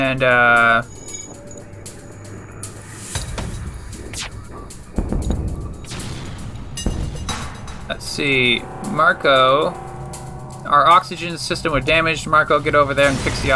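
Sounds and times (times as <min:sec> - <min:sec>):
speech: 0:00.0 - 0:01.0, 0:07.9 - 0:09.9, 0:10.6 - 0:13.5
steady electronic background: 0:00.0 - 0:13.5
laser weapons firing at an enemy ship in a space combat video game: 0:02.0 - 0:13.5
booming impacts: 0:03.2 - 0:13.5.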